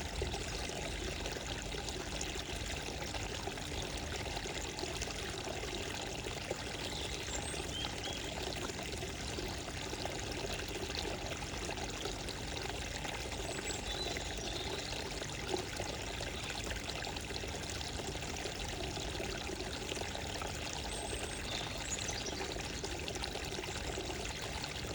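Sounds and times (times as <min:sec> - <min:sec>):
calming morning water: 0:00.0 - 0:24.9
birds: 0:05.8 - 0:08.8, 0:13.3 - 0:15.2, 0:20.0 - 0:24.9.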